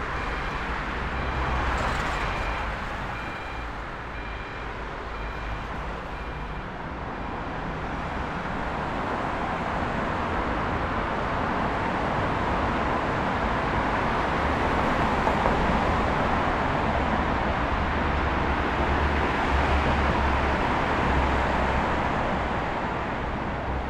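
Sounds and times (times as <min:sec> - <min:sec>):
city street ambience: 0:00.0 - 0:23.8.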